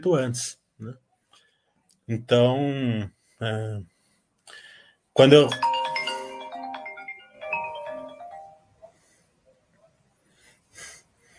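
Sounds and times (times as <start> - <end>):
speech: 0.0 - 1.0, 2.1 - 3.9, 5.2 - 5.7
phone ringtone melodic phrase: 5.2 - 9.0.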